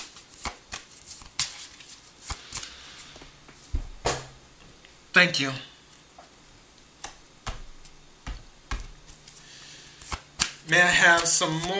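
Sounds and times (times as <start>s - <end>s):
tarot cards being shuffled: 0.0s - 3.2s, 7.0s - 11.7s
speech: 5.2s - 5.7s, 10.7s - 11.7s.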